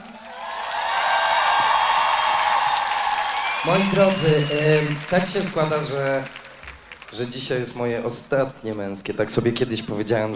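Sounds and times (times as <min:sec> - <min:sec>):
huge applause: 0:00.0 - 0:07.9
speech: 0:03.6 - 0:06.4, 0:07.1 - 0:10.3.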